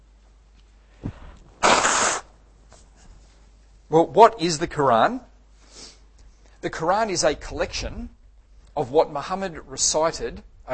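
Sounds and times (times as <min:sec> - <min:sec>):
nose blowing: 0:01.0 - 0:02.4
speech: 0:03.9 - 0:05.3, 0:06.6 - 0:08.2, 0:08.8 - 0:10.7.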